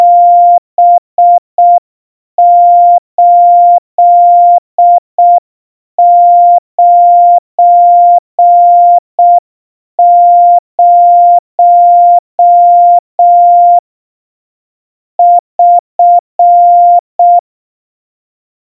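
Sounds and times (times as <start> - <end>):
Morse code tones at 700 Hz: 0.0 - 1.8, 2.4 - 5.4, 6.0 - 9.4, 10.0 - 13.8, 15.2 - 17.4.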